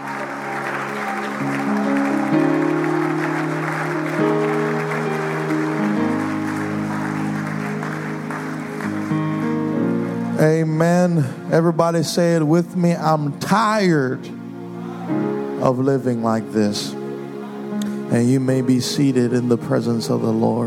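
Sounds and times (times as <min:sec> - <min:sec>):
audience clapping hands: 0:00.0 - 0:10.0
speech: 0:10.4 - 0:14.4, 0:15.1 - 0:17.0, 0:18.1 - 0:20.6.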